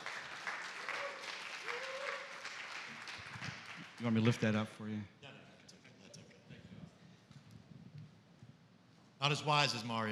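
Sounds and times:
audience applause: 0.0 - 4.2
speech: 4.0 - 5.2, 9.2 - 10.1.

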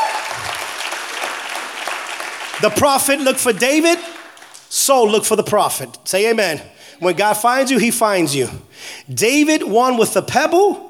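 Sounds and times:
audience clapping: 0.0 - 5.4
speech: 2.6 - 10.8.

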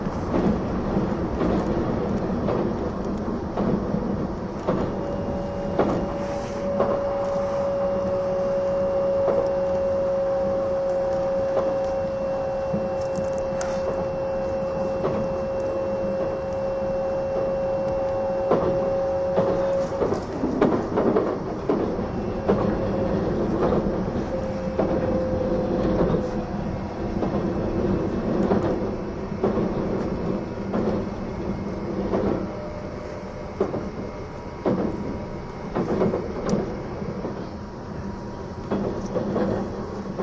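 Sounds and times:
E261 series Saphir Odoriko train running between Atami and Izukyu-Shimoda: 0.0 - 40.2
clear whining tone: 4.6 - 37.4.

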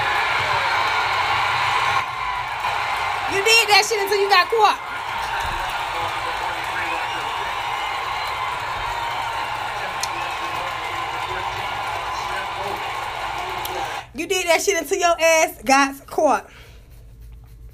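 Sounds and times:
audience applause and cheering: 0.0 - 14.1
speech: 3.4 - 4.9, 14.2 - 16.6.

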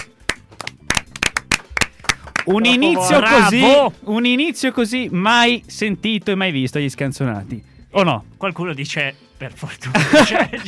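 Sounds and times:
audience applause: 0.0 - 2.6
speech: 2.5 - 10.6
laughter: 9.8 - 10.6.

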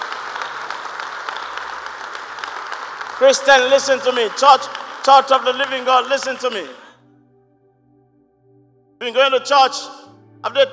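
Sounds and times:
audience applauding: 0.0 - 6.9
speech: 3.2 - 6.8, 9.0 - 10.7.

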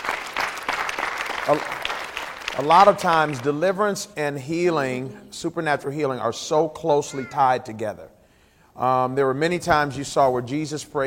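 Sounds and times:
audience clapping: 0.0 - 3.8
speech: 1.5 - 1.8, 2.6 - 8.1, 8.8 - 11.0.

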